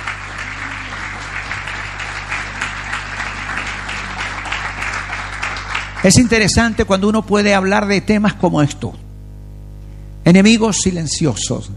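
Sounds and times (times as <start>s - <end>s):
audience applause: 0.0s - 6.5s
low hum: 0.0s - 10.8s
speech: 6.0s - 9.0s, 10.3s - 11.7s.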